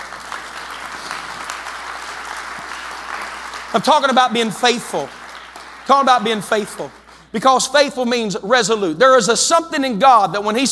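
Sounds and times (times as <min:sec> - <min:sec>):
crowd clapping hands: 0:00.0 - 0:07.9
speech: 0:03.7 - 0:05.2, 0:05.9 - 0:10.6.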